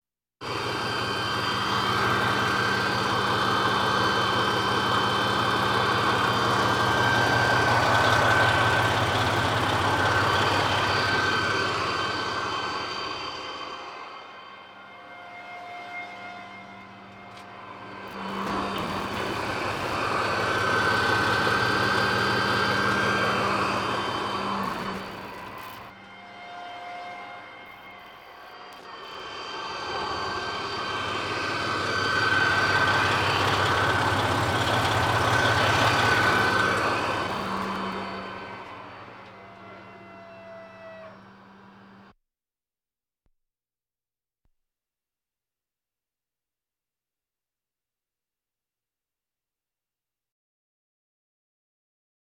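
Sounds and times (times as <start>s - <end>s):
military vehicles: 0.4s - 42.1s.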